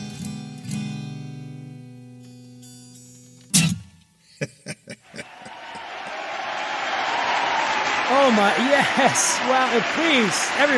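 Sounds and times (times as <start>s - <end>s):
laughter: 4.4s - 7.4s, 8.1s - 10.7s
audience cheering: 5.0s - 10.7s
speech: 8.4s - 10.7s.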